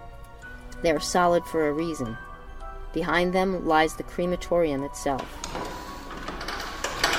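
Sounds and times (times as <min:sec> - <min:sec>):
speech: 0:00.8 - 0:02.3, 0:02.9 - 0:05.7
metal doors sliding open: 0:05.2 - 0:07.1.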